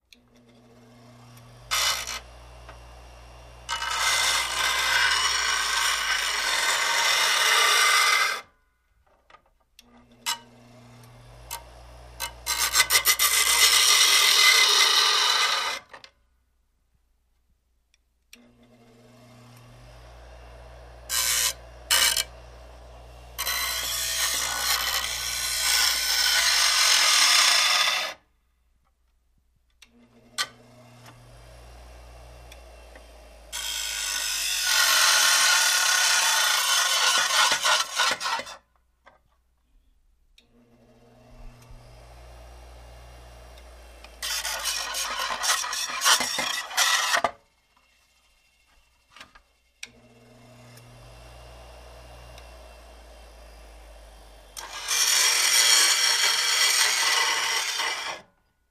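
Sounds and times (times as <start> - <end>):
electric grinder grinding: 0.4 - 8.5, 10.1 - 16.0, 18.6 - 28.2, 30.2 - 38.6, 40.7 - 58.3.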